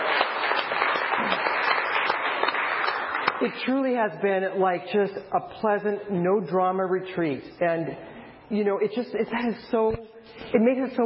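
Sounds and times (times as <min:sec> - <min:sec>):
round of applause: 0:00.0 - 0:03.5
speech: 0:03.4 - 0:11.0.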